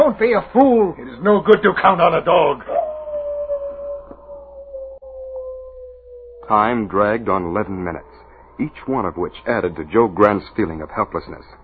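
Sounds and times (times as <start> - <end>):
speech: 0.0 - 2.8, 6.5 - 11.6
wolves howling: 2.6 - 10.0.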